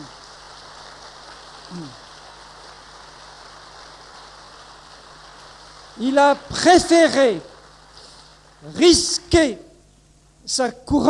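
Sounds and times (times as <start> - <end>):
audience applause: 0.0 - 8.7
speech: 1.7 - 2.0, 6.0 - 7.5, 8.6 - 9.6, 10.5 - 11.0.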